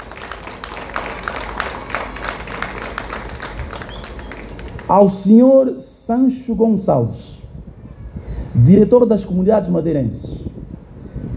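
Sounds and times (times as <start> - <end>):
audience applause: 0.0 - 4.9
speech: 4.9 - 7.3, 8.6 - 10.4.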